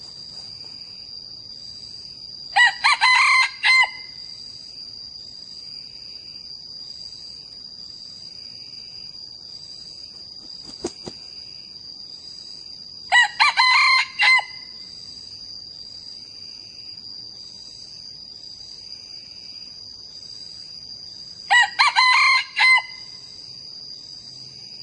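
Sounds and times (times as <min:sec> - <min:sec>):
young male red junglefowl crowing: 0:02.6 - 0:04.2, 0:13.1 - 0:14.8, 0:21.5 - 0:23.2.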